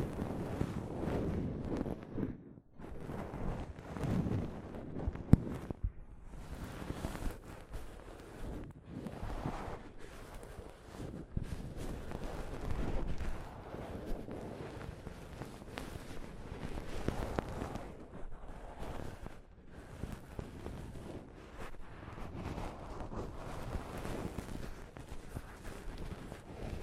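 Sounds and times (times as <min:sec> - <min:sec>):
soft fabric brushing over a microphone: 0:00.0 - 0:26.8.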